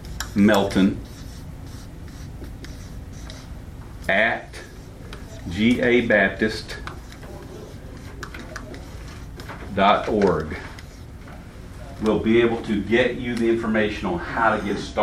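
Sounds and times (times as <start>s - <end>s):
marker writing an email address on a board: 0.0s - 11.4s
speech: 0.4s - 1.1s, 4.1s - 4.6s, 5.4s - 6.9s, 9.8s - 10.7s, 12.0s - 15.0s.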